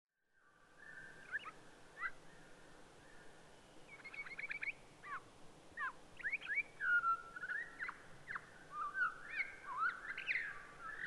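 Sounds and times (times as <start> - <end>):
Townsend's solitaire singing a long continuous fluty warble: 0.3 - 2.5, 3.8 - 11.0.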